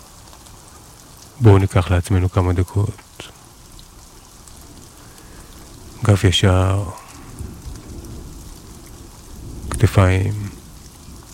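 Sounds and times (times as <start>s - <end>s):
raindrops falling: 0.0s - 11.3s
speech: 1.4s - 3.3s, 6.0s - 7.0s, 9.8s - 10.6s.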